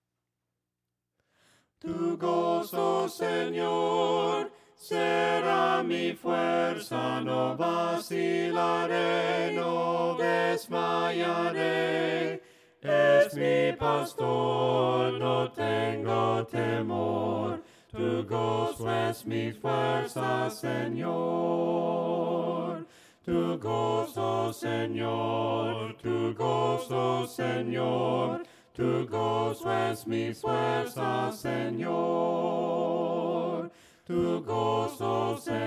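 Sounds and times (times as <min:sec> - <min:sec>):
voices singing hymns a cappella: 0:01.8 - 0:35.6.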